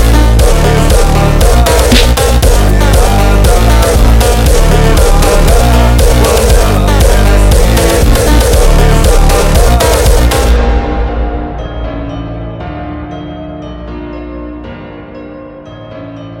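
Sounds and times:
super slowed funk music: 0.0 - 12.6.

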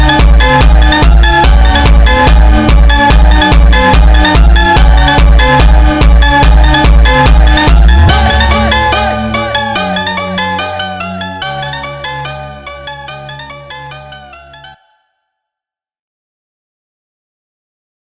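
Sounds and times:
sped up funk music: 0.0 - 14.4.

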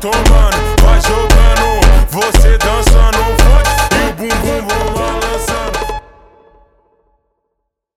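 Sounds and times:
slowed funk music: 0.0 - 6.0.

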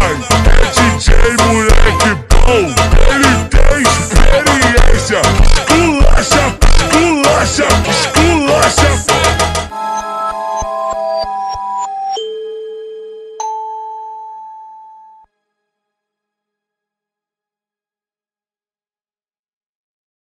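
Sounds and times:
super slowed funk music: 0.0 - 12.3.

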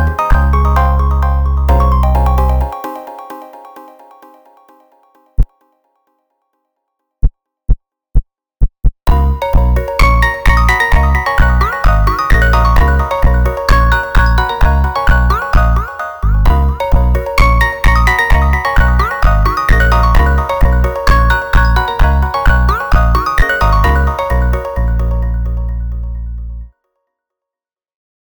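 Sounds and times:
funk instrumental music: 0.0 - 3.1, 9.1 - 26.5.

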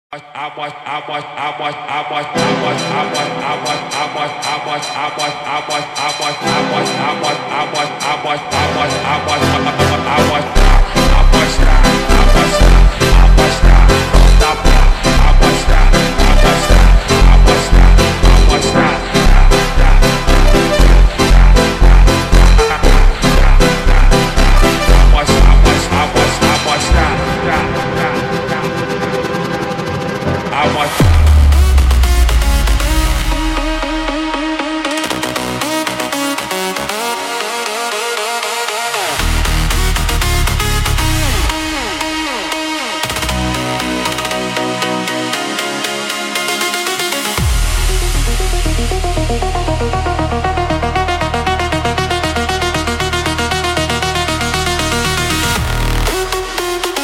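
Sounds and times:
phonk music: 0.1 - 57.0.

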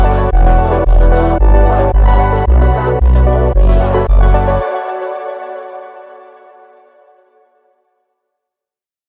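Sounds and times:
sped up funk music: 0.0 - 5.6.

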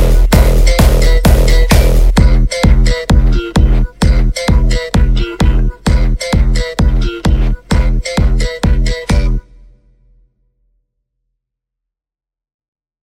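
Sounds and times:
hardstyle music: 0.0 - 9.7.

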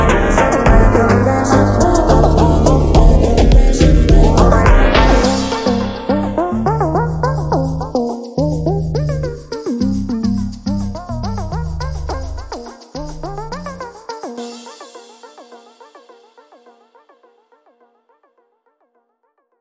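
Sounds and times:
super slowed funk music: 0.0 - 14.4.

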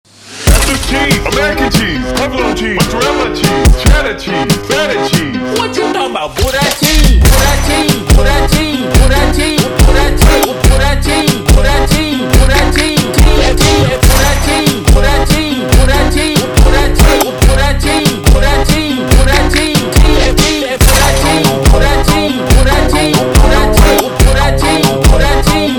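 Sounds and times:
super slowed brega music: 0.2 - 25.7.

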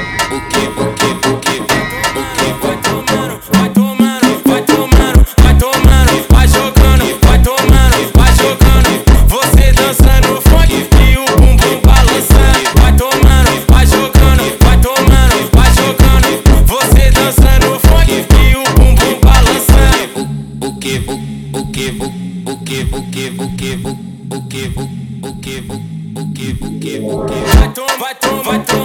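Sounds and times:
distorted funk music: 0.0 - 20.2, 26.3 - 28.8.

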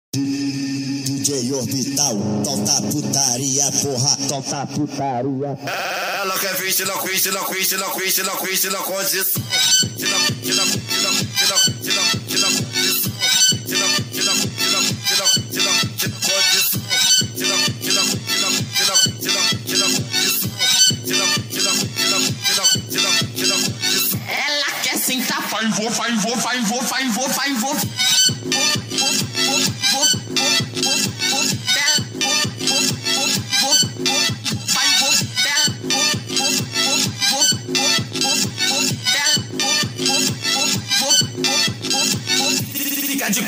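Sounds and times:
funk montagem music: 0.2 - 43.4.

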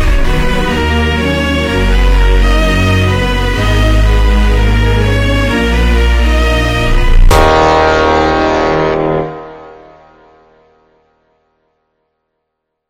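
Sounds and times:
super slowed funk music: 0.0 - 9.9.

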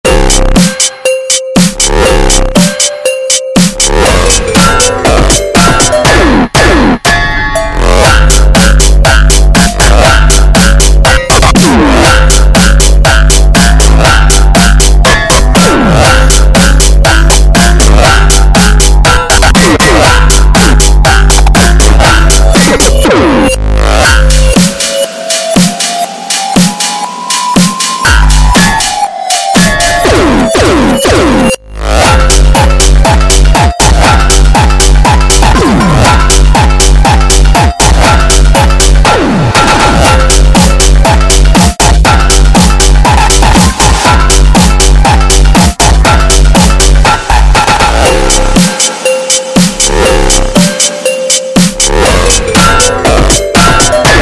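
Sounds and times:
Arabic hardtekk music: 0.0 - 54.2.

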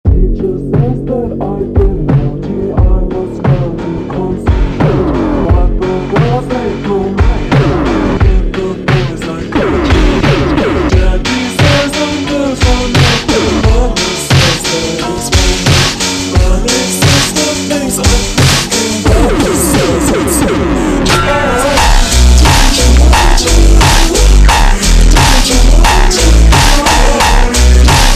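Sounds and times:
slowed tekk music: 0.1 - 28.1.

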